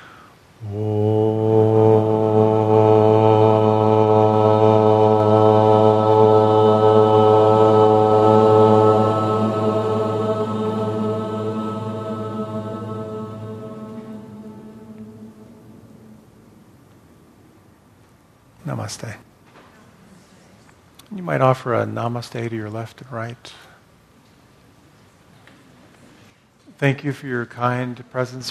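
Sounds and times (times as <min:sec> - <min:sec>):
group chanting Om in unison: 0:00.0 - 0:17.5
speech: 0:00.6 - 0:00.9, 0:21.9 - 0:23.6, 0:26.8 - 0:28.4.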